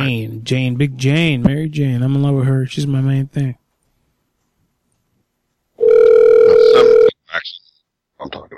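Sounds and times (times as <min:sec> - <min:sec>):
speech: 0:00.0 - 0:03.6
telephone dial tone while placing a call: 0:05.8 - 0:07.1.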